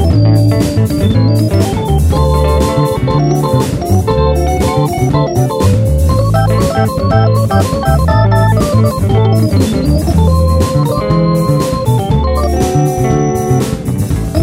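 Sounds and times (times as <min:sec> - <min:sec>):
blues keyboard solo in A at 120 BPM: 0:00.0 - 0:14.4.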